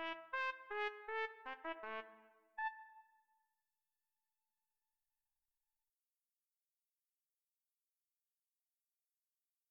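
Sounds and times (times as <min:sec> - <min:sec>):
solo trumpet: 0:00.0 - 0:03.0.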